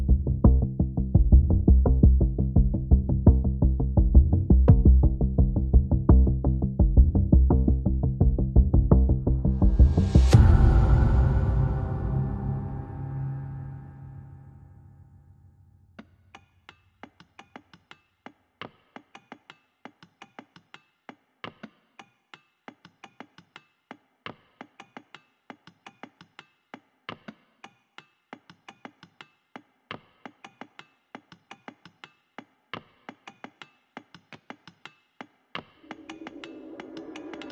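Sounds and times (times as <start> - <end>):
drums: 0.0 - 14.4, 16.0 - 37.5
bass: 0.0 - 14.8
sound effects: 9.5 - 15.0, 35.8 - 37.5.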